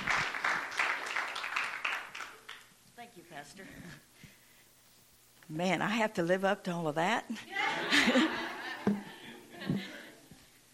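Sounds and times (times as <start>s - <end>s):
applause welcoming a church secretary: 0.0s - 2.7s
speech: 5.5s - 9.1s
laughter: 7.4s - 10.2s.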